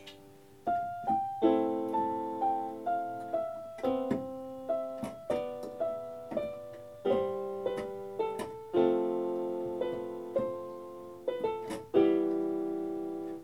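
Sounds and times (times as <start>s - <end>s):
keyboard practice improvisation: 0.0s - 13.4s.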